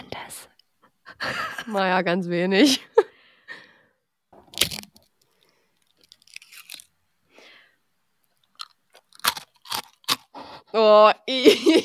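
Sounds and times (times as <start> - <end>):
speech: 1.2 - 2.9, 10.9 - 11.8
chewing cheese: 4.6 - 6.9, 8.4 - 10.4.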